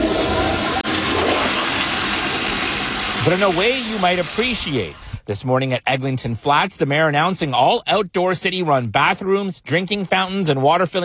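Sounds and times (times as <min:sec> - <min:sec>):
toilet flushing: 0:00.0 - 0:05.2
speech: 0:03.2 - 0:11.0.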